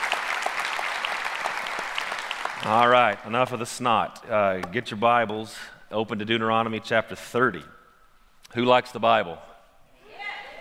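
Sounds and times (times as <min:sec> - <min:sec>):
church audience applause: 0:00.0 - 0:03.3
speech: 0:02.6 - 0:07.8, 0:08.5 - 0:09.5.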